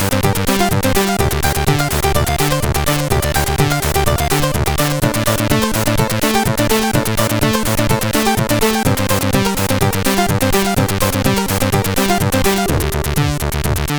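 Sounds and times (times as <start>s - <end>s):
techno chiptune music on a MOS6581R3 SID chip: 0.0s - 13.9s.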